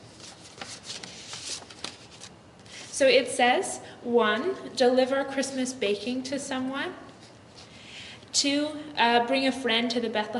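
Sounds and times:
paper envelopes being opened, crisp rustling: 0.0 - 3.0
speech: 3.0 - 7.1, 8.4 - 10.3.

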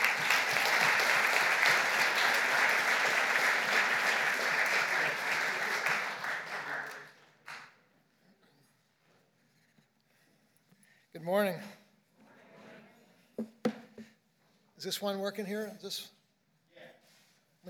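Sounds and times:
audience clapping to welcome a pastor: 0.0 - 7.8
speech: 14.8 - 16.2.

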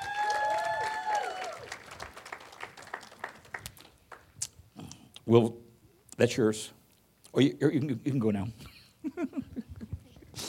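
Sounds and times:
audience hand clap of appreciation: 0.0 - 4.4
speech: 5.3 - 5.6, 6.2 - 6.8, 7.4 - 9.3.

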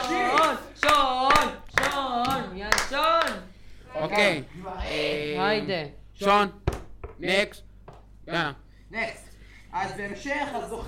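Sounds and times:
audience clapping: 0.0 - 3.4
voices chanting: 0.0 - 5.8
speech: 4.2 - 6.6, 7.2 - 7.7, 8.3 - 10.8.

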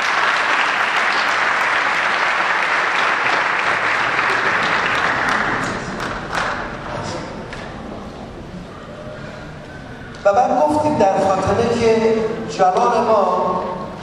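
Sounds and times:
audience applause: 0.0 - 7.1
speech: 10.3 - 13.7.

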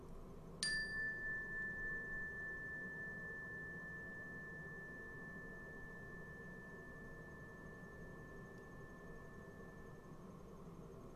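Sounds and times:
soft hum: 0.0 - 11.1
meditation chime ringing: 0.6 - 10.6.

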